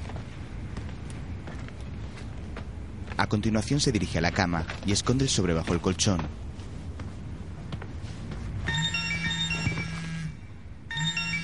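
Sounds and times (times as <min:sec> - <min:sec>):
low hum: 0:00.0 - 0:11.4
speech: 0:03.2 - 0:06.4
mobile phone ringing with a bright electronic tone: 0:08.7 - 0:11.4.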